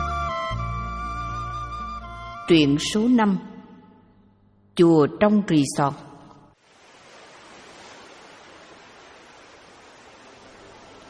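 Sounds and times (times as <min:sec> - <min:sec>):
speech: 0:02.5 - 0:03.5, 0:04.8 - 0:06.1
sea waves crashing against rocks: 0:06.6 - 0:11.0.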